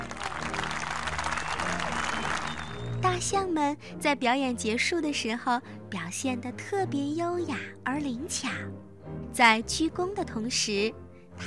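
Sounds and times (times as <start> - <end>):
audience cheering for a tap dance: 0.0 - 3.0
thunderous applause: 0.0 - 3.0
speech: 3.1 - 11.4.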